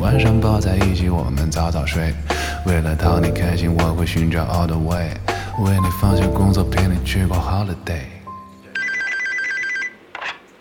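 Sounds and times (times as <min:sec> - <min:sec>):
speech: 0:00.1 - 0:08.2
telephone ringing with electronic trilling tone: 0:08.6 - 0:10.1.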